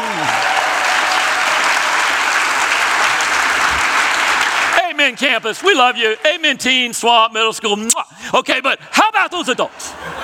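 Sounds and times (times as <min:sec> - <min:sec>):
church audience applauding: 0:00.0 - 0:07.3
speech: 0:05.0 - 0:10.2
laughter: 0:09.4 - 0:10.2.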